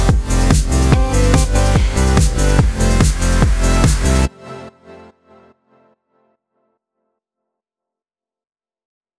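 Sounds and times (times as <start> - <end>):
144 BPM music beat: 0.0 - 4.3.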